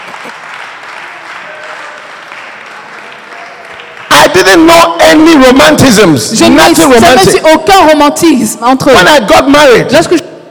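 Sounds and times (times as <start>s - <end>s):
audience clapping: 0.0s - 4.8s
speech: 4.4s - 10.3s.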